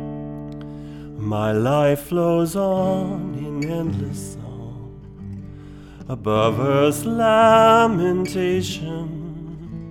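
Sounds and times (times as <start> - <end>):
person singing: 1.2 - 5.2, 6.0 - 9.9.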